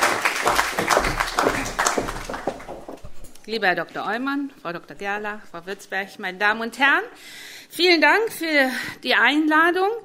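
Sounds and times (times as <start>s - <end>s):
audience applause: 0.0s - 3.2s
speech: 3.5s - 10.0s.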